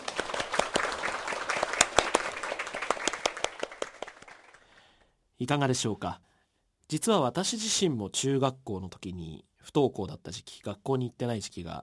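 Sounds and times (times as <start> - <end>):
audience applause: 0.0 - 4.7
speech: 5.4 - 6.2, 6.9 - 11.8.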